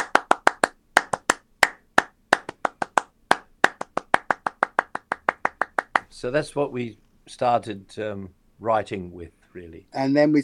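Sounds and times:
drum machine electronic hand clap pattern: 0.0s - 6.0s
speech: 6.2s - 10.4s.

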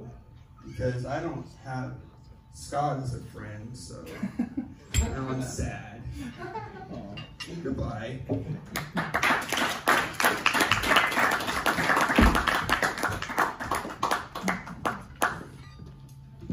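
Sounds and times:
speech: 0.8s - 9.8s
laughter: 4.0s - 7.2s
audience clapping: 8.7s - 15.6s.

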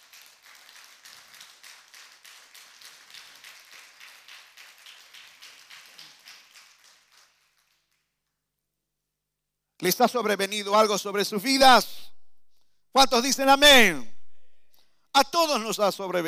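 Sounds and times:
audience applause: 0.0s - 7.9s
speech: 9.8s - 12.0s, 13.0s - 14.1s, 15.2s - 16.2s.

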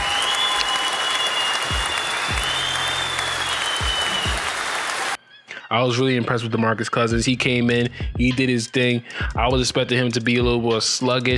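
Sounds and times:
applause: 0.0s - 5.2s
speech: 5.7s - 11.3s.

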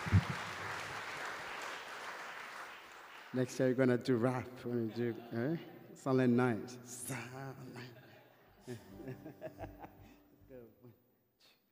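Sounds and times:
audience clapping: 0.0s - 3.8s
speech: 3.3s - 8.0s, 8.7s - 11.0s
laughter: 7.6s - 10.3s.

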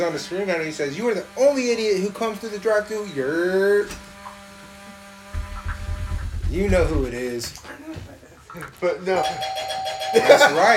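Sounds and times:
speech: 0.0s - 4.1s, 6.5s - 10.7s
doorbell ringing: 9.2s - 10.7s.

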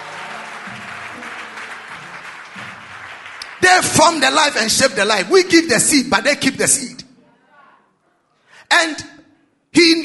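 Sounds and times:
audience clapping: 0.0s - 4.7s
speech: 3.6s - 7.0s, 8.8s - 9.1s.

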